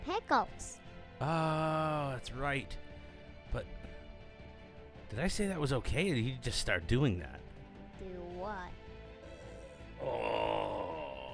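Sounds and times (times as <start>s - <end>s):
speech: 0.3s - 2.8s, 3.5s - 3.9s, 5.1s - 7.4s, 8.0s - 8.8s, 10.0s - 10.8s
burp: 10.0s - 11.3s.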